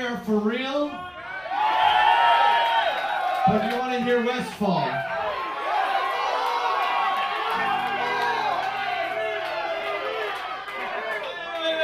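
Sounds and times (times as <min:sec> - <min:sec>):
speech: 0:00.1 - 0:01.2, 0:03.4 - 0:05.1
audience cheering: 0:01.0 - 0:11.8.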